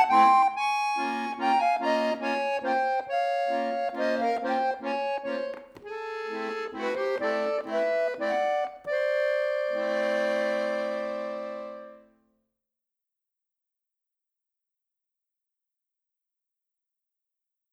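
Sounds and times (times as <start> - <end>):
musette miniature valse: 0.0 - 12.1.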